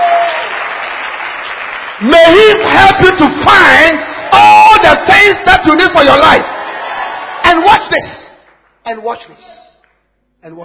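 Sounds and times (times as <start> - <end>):
audience clapping hands: 0.0 - 4.0, 6.6 - 8.9
speech: 2.0 - 4.1, 4.9 - 6.5, 7.7 - 8.2, 8.8 - 9.7, 10.4 - 10.6.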